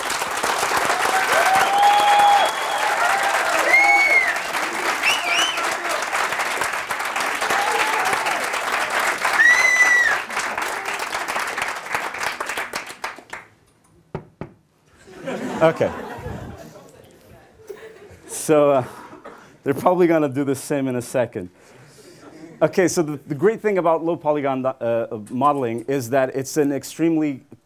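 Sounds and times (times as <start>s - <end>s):
crowd whooping and cheering: 0.0s - 11.4s
crowd clapping in a clapping contest: 0.0s - 13.6s
laughter: 15.0s - 19.4s
speech: 15.6s - 16.0s, 18.5s - 19.0s, 19.6s - 21.8s, 22.6s - 27.5s.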